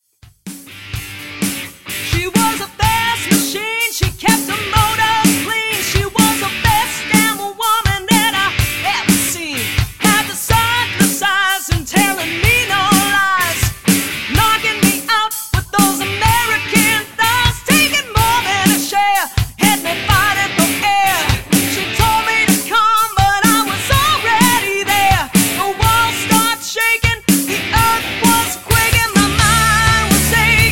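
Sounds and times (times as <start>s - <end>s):
cover band playing: 0.5s - 30.6s.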